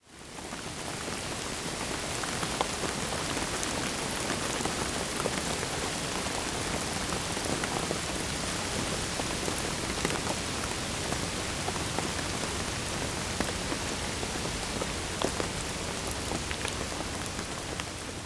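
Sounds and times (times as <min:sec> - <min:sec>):
rain: 0:00.0 - 0:18.2.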